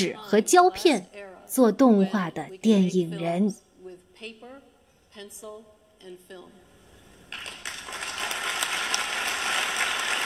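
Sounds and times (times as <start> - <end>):
speech: 0.0 - 3.6, 4.2 - 4.6, 5.2 - 6.6
applause: 7.3 - 10.2.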